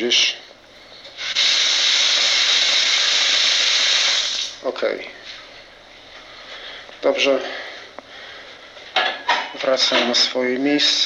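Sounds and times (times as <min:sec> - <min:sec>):
speech: 0:00.0 - 0:00.4, 0:04.8 - 0:05.2, 0:07.0 - 0:07.6, 0:09.6 - 0:11.0
water running into a bathtub: 0:01.2 - 0:04.6.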